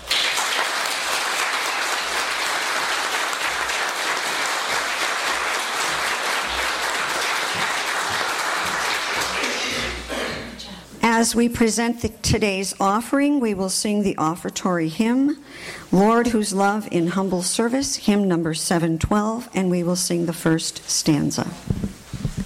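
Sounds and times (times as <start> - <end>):
audience applause: 0.0 - 10.0
speech: 11.2 - 21.7.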